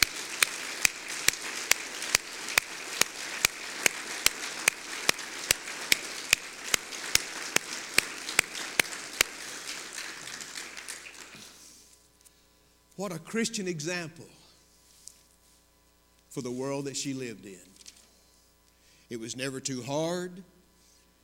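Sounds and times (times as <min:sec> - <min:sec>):
crowd applauding: 0:00.0 - 0:11.6
speech: 0:13.0 - 0:14.4, 0:16.4 - 0:17.7, 0:19.1 - 0:20.5.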